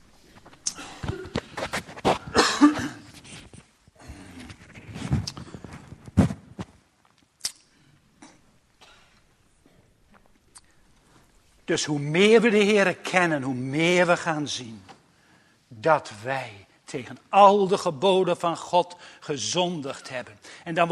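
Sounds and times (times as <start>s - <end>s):
man coughing during a church sermon after inhaling something: 2.2s - 3.2s
speech: 11.7s - 14.9s, 15.8s - 20.9s.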